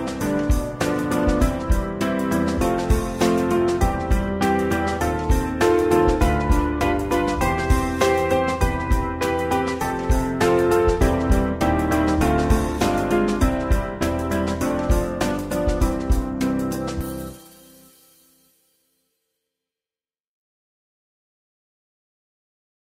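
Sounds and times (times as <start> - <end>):
C major scale backing track: 0.0 - 18.2.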